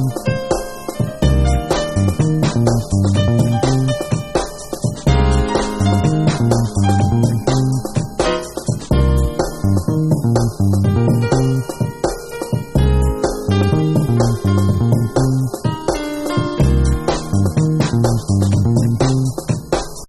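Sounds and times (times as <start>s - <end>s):
heavy piano: 0.0s - 20.0s.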